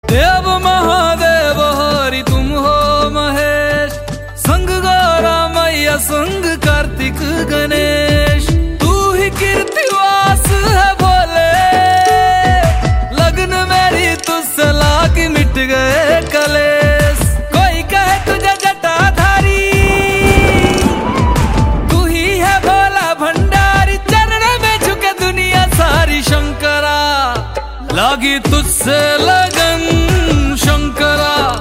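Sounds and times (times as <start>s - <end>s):
Bhakti devotional song: 0.0s - 31.6s.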